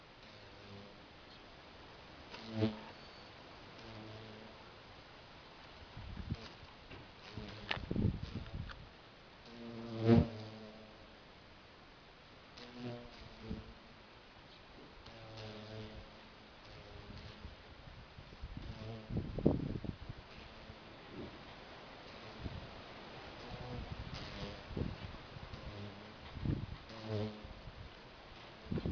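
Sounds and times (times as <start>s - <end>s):
cockchafer beetle sound: 2.3s - 4.6s, 6.2s - 8.8s, 9.4s - 11.0s, 15.0s - 17.6s, 18.5s - 21.4s, 22.0s - 27.7s.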